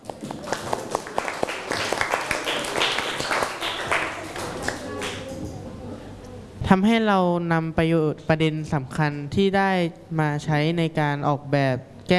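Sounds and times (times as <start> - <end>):
classroom applause: 0.0 - 5.4
speech: 6.7 - 12.1.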